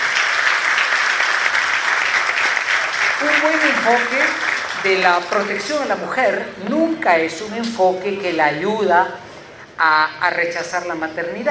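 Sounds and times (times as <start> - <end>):
audience applause: 0.0 - 5.7
speech: 3.2 - 9.2, 9.8 - 11.5.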